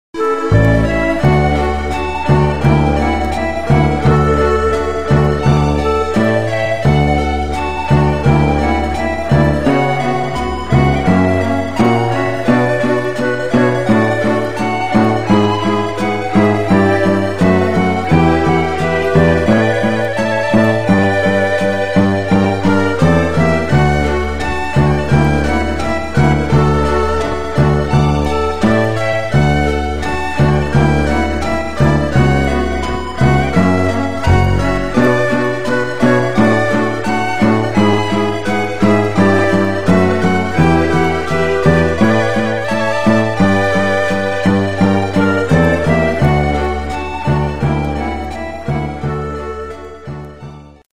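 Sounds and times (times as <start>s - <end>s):
RPG fantasy town game music: 0.2s - 50.8s.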